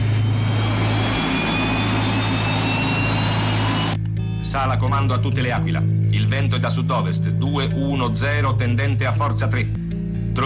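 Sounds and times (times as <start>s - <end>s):
aircraft engine starting and taking off: 0.0s - 4.0s
speech: 4.5s - 9.8s.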